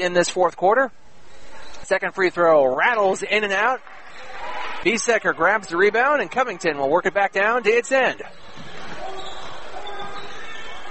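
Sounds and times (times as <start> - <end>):
speech: 0.0 - 1.1, 1.8 - 8.6
crowd noise and voices: 0.0 - 10.8
basketball being dribbled during a women's game: 8.3 - 9.6.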